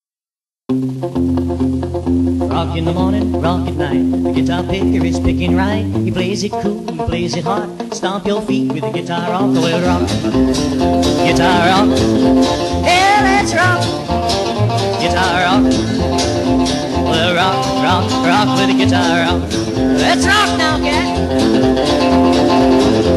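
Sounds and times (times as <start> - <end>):
rock guitar: 0.7 - 23.1.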